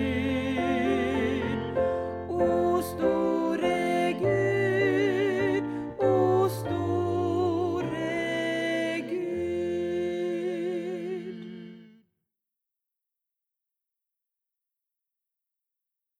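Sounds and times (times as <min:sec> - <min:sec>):
SATB choir singing a hymn: 0:00.0 - 0:11.9.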